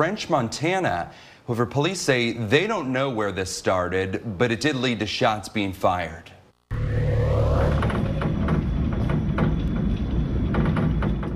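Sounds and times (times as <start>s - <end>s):
speech: 0.0s - 6.4s
storm winds rattling skyscraper windows in San Francisco: 7.7s - 11.3s.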